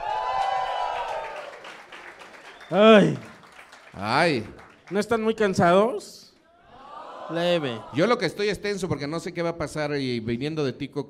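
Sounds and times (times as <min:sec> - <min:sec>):
audience applause: 0:00.0 - 0:05.6
speech: 0:02.7 - 0:03.3, 0:04.0 - 0:06.2, 0:07.3 - 0:11.0.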